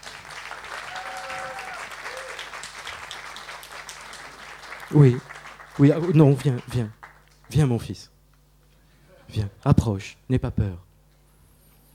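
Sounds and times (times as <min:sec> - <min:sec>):
audience applause at a French-speaking religious gathering: 0:00.0 - 0:07.6
speech: 0:04.9 - 0:08.1, 0:09.3 - 0:10.8.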